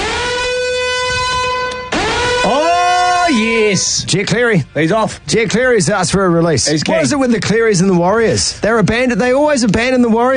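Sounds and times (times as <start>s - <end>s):
loud buzzy siren blaring: 0.0s - 3.8s
speech: 3.7s - 10.3s.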